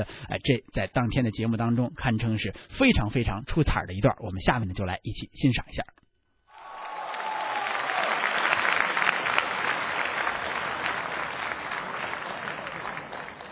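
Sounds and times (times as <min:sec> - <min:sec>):
speech: 0:00.0 - 0:06.0
audience applause: 0:06.6 - 0:13.4.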